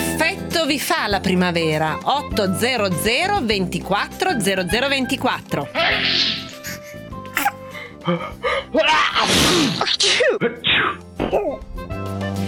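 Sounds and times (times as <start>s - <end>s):
speech: 0.6s - 6.4s, 8.0s - 12.0s
person sneezing: 5.9s - 8.3s, 9.0s - 11.6s.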